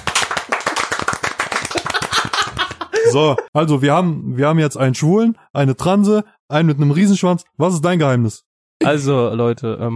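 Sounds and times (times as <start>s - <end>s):
crowd applause: 0.0s - 3.0s
laughter: 1.7s - 3.5s
speech: 3.1s - 9.9s.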